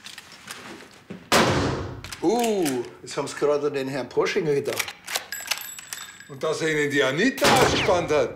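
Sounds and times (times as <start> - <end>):
gunshot at a shooting range: 1.3 - 2.0, 7.4 - 8.3
speech: 2.2 - 5.0, 6.3 - 8.3.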